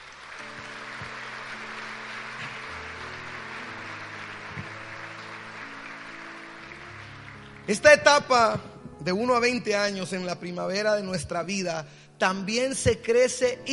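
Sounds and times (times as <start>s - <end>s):
audience applauding: 0.0s - 8.5s
speech: 7.7s - 13.7s.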